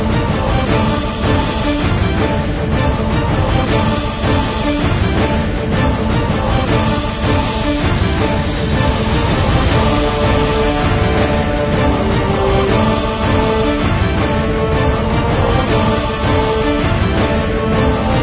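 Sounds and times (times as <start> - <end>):
choir singing: 0.0 - 18.2
tense dramatic action trailer drums: 0.0 - 18.2
trumpet: 0.0 - 18.2
orchestra playing tense dramatic action trailer music: 7.8 - 18.2.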